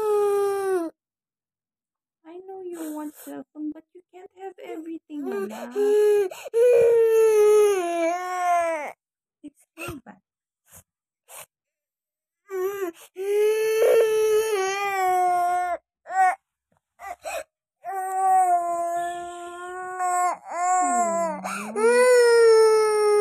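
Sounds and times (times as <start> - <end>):
baby crying: 5.2 - 8.9, 12.5 - 16.4, 17.0 - 23.2
speech: 5.4 - 7.3.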